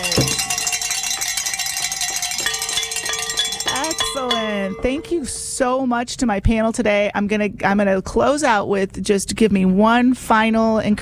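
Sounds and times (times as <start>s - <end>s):
bells ringing: 0.0s - 5.6s
speech: 4.7s - 10.9s.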